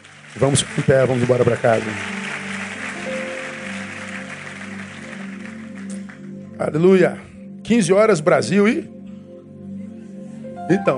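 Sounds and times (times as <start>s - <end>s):
audience applauding: 0.0s - 6.5s
speech: 0.4s - 2.2s, 6.6s - 9.0s, 10.7s - 10.9s.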